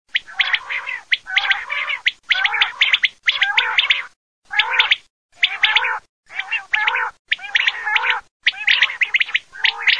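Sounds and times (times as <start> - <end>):
quail: 0.1 - 9.9.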